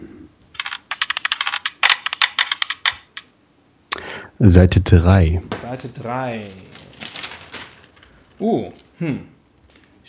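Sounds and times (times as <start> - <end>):
dice being rolled: 0.6 - 3.3
speech: 4.4 - 6.8, 8.4 - 9.4.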